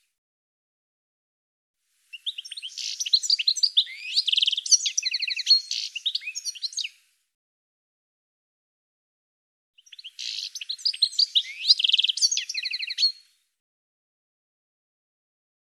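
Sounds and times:
bird twittering: 2.1s - 6.9s, 9.8s - 13.3s.

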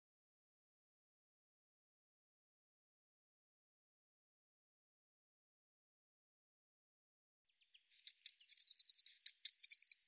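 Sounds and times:
bird singing: 7.5s - 10.0s.

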